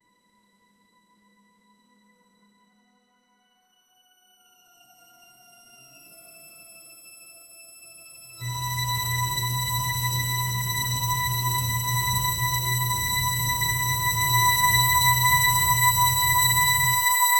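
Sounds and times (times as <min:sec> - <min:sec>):
suspense build-up score music: 0:08.4 - 0:17.2.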